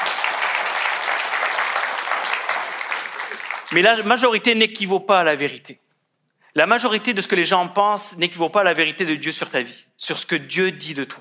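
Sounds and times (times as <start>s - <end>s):
audience applause: 0.0s - 4.1s
speech: 3.7s - 5.8s, 6.6s - 11.2s.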